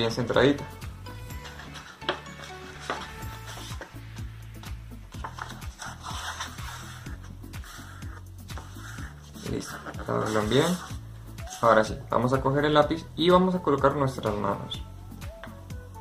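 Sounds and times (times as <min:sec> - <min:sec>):
speech: 0:00.0 - 0:00.8, 0:10.1 - 0:11.0, 0:11.6 - 0:14.9
cardstock being folded in half: 0:01.4 - 0:03.9, 0:05.2 - 0:10.9.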